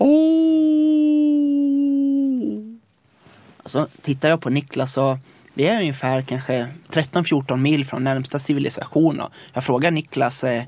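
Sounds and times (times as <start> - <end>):
human voice imitating a wolf's long howl: 0.0 - 2.8
speech: 3.7 - 10.6.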